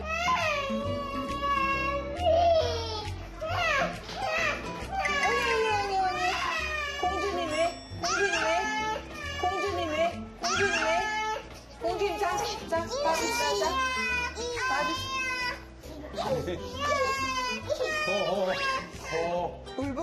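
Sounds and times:
baby crying: 0:00.0 - 0:19.4.

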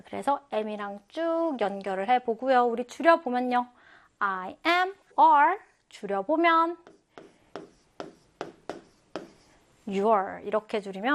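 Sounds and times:
speech: 0:00.1 - 0:07.0, 0:09.9 - 0:11.1
pen strokes writing English words by hand: 0:00.6 - 0:01.8, 0:06.7 - 0:10.0.

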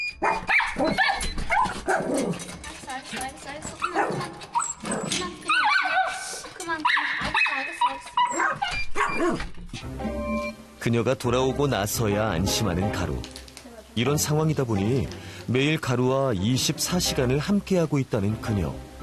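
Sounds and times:
speech: 0:00.2 - 0:01.2, 0:10.8 - 0:13.4, 0:14.0 - 0:18.9
dogs barking: 0:00.2 - 0:02.5, 0:03.7 - 0:09.5.

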